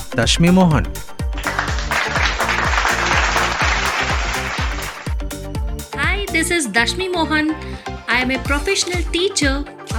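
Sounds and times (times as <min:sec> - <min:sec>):
speech: 0:00.2 - 0:01.2, 0:06.4 - 0:09.9
applause: 0:01.3 - 0:05.2.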